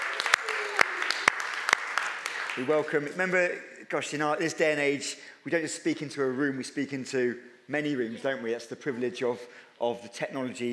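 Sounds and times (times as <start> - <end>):
crowd applause: 0.0 - 2.9
loud sharp claps from someone: 0.0 - 2.9
speech: 2.6 - 10.7.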